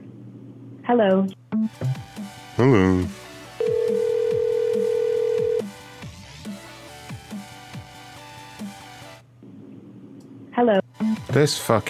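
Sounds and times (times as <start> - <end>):
speech: 0.9 - 3.2, 11.4 - 11.8
telephone beep on an outgoing call: 3.6 - 5.7.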